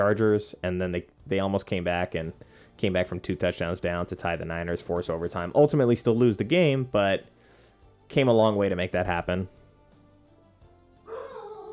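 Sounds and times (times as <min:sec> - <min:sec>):
speech: 0:00.0 - 0:07.4, 0:08.1 - 0:09.6
small dog barking: 0:11.1 - 0:11.7.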